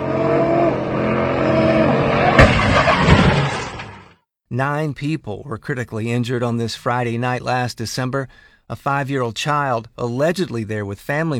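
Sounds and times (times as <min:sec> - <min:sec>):
car engine revving while doing donuts: 0:00.0 - 0:04.1
tires roaring: 0:00.0 - 0:04.1
sharp crack: 0:02.3 - 0:04.1
speech: 0:04.5 - 0:11.3.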